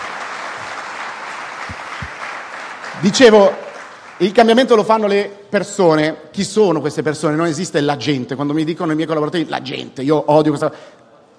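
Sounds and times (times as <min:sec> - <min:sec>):
audience applause for a speaker at a live talk: 0:00.0 - 0:04.5
speech: 0:03.0 - 0:03.6, 0:04.2 - 0:11.0.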